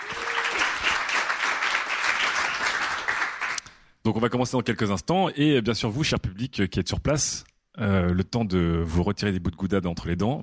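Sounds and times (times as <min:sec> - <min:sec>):
audience applause: 0:00.0 - 0:03.6
speech: 0:04.1 - 0:10.4.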